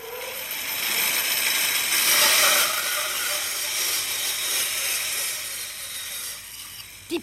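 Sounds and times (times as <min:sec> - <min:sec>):
saw running: 0:00.0 - 0:07.2.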